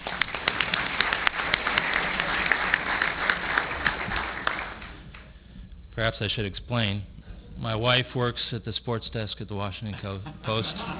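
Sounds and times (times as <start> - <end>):
audience applause: 0.0 - 5.3
speech: 6.0 - 10.9
laughter: 9.8 - 10.9.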